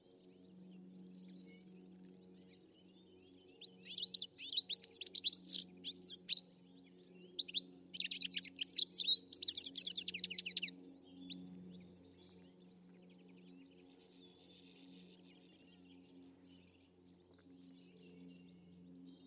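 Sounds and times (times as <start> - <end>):
bird twittering: 3.8 - 6.4, 7.4 - 11.3.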